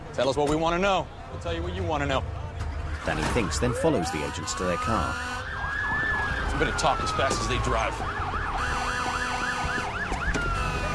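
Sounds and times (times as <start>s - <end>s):
speech: 0.2s - 2.4s, 3.1s - 6.0s, 6.6s - 8.2s
fire truck sirens wailing: 2.8s - 10.9s.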